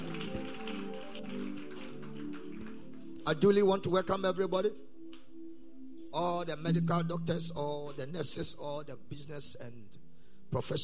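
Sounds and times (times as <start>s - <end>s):
audience clapping hands: 0.0s - 3.4s
speech: 3.2s - 4.9s, 6.1s - 10.8s.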